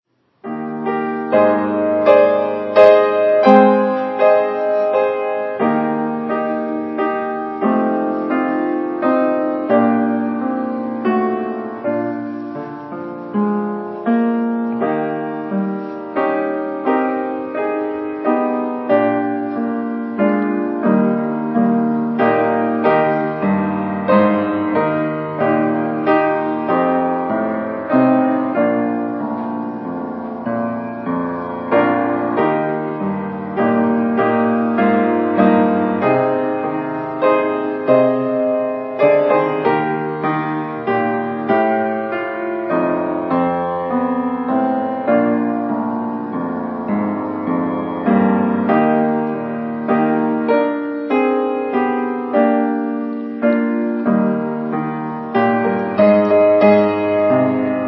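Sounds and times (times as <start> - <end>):
piano: 0.0 - 57.8.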